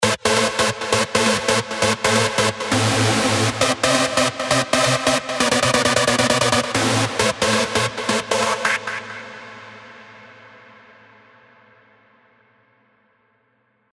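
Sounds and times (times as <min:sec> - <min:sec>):
synth stab: 0:00.0 - 0:10.8.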